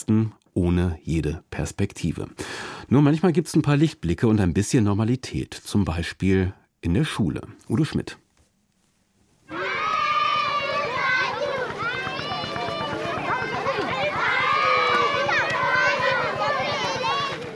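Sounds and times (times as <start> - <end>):
speech: 0.0 - 8.2
children playing, laughing, singing and shouting in a school playground: 9.5 - 17.5.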